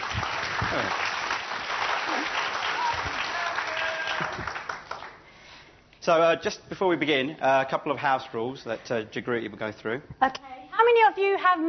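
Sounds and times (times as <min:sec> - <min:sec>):
audience clapping: 0:00.0 - 0:05.4
speech: 0:00.8 - 0:01.0, 0:06.0 - 0:11.6.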